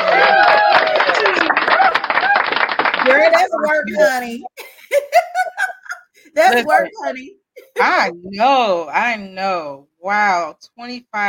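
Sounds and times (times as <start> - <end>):
canned applause and cheering from a button: 0.0 - 4.3
laughter: 3.0 - 7.9
speech: 3.7 - 4.6, 6.4 - 11.2.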